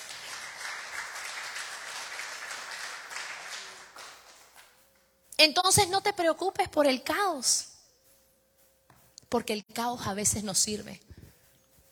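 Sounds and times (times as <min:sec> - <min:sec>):
audience applause: 0:00.0 - 0:04.5
speech: 0:05.4 - 0:07.7, 0:09.3 - 0:11.1.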